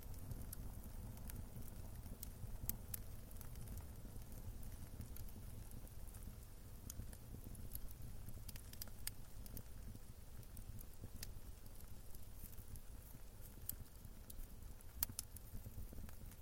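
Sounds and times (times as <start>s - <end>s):
fire roaring: 0.0s - 16.4s.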